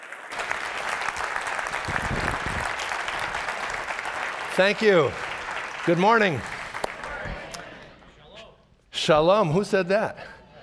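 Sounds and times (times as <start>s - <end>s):
church congregation clapping to welcome a speaker: 0.0s - 7.9s
speech: 4.6s - 5.2s, 5.8s - 6.5s, 9.0s - 10.3s.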